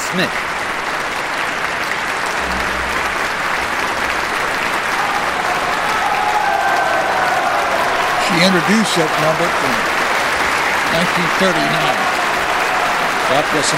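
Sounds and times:
large crowd applause in a standing ovation: 0.0s - 13.7s
speech: 0.1s - 0.6s, 8.4s - 10.0s, 10.9s - 12.1s, 13.3s - 13.7s
low hum: 2.2s - 4.8s.

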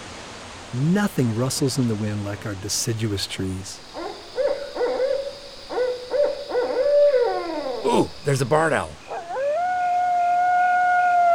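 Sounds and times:
speech: 0.7s - 4.1s, 7.8s - 9.0s
coyote howling: 3.9s - 11.3s.

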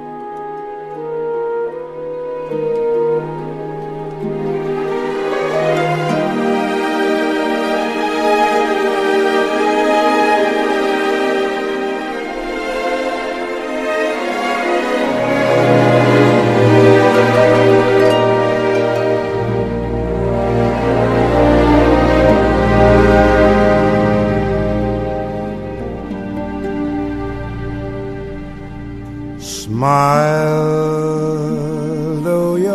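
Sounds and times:
jazz band accompaniment: 0.4s - 29.4s
speech: 2.5s - 2.9s
soulful male jazz singer singing: 29.4s - 32.7s.

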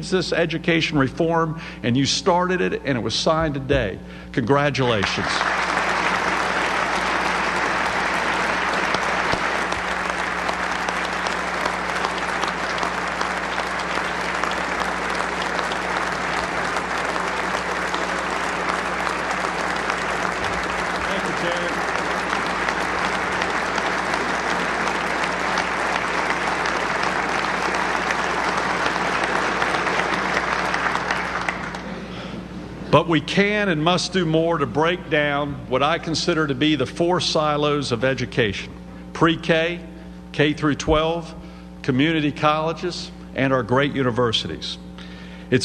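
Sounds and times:
speech: 0.0s - 5.6s, 33.1s - 44.8s, 45.5s - 45.6s
audience applause: 4.9s - 32.0s.

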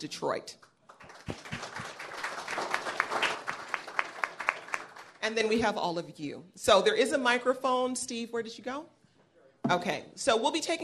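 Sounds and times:
speech: 0.0s - 0.7s, 5.3s - 9.0s, 9.7s - 10.8s
audience applause: 0.9s - 5.2s.

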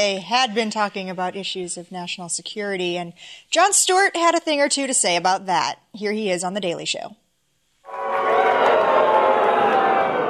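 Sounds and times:
speech: 0.0s - 7.2s
audience chanting that sounds like booing: 7.9s - 10.2s.

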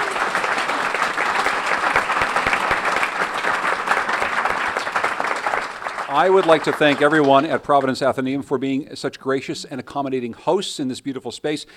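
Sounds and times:
crowd applause: 0.0s - 8.0s
speech: 6.2s - 11.7s.

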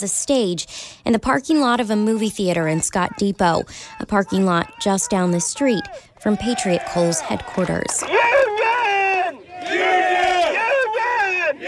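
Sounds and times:
speech: 0.0s - 8.4s
crowd of miners chanting pro-union cheers: 4.1s - 11.6s.

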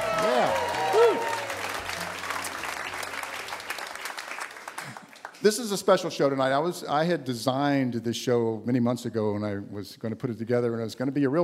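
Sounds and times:
studio audience applause in the Museum of Commerce in Pensacola: 0.0s - 5.6s
speech: 5.4s - 11.4s.

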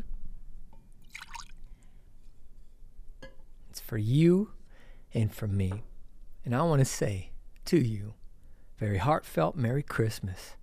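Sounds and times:
ladle pouring hot wassail into a cup: 1.0s - 1.7s
speech: 3.8s - 8.2s, 8.8s - 10.6s.

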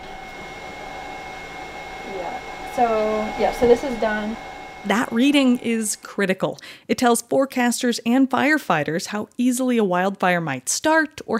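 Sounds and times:
machine humming while baking moisture out of plant samples: 0.0s - 6.4s
speech: 2.1s - 11.3s.

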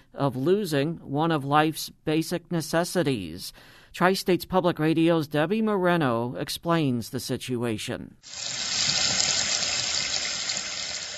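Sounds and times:
speech: 0.1s - 9.0s
water running from a faucet: 8.2s - 11.1s.

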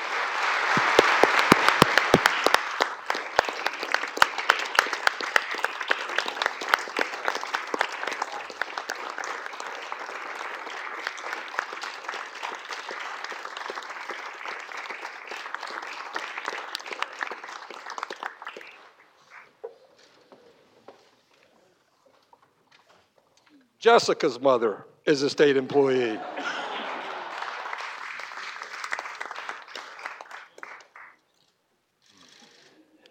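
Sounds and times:
audience applause: 0.0s - 19.5s, 26.3s - 31.2s
speech: 23.8s - 26.6s.

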